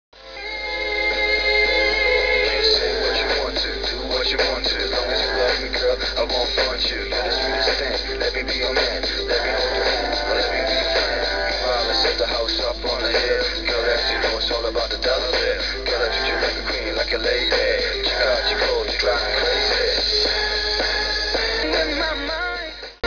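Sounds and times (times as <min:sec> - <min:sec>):
rap music: 0:01.0 - 0:23.0.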